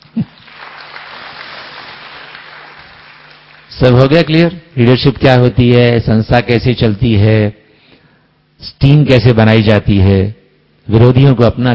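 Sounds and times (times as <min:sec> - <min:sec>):
audience clapping: 0:00.0 - 0:04.6
speech: 0:03.8 - 0:07.6, 0:08.6 - 0:11.7.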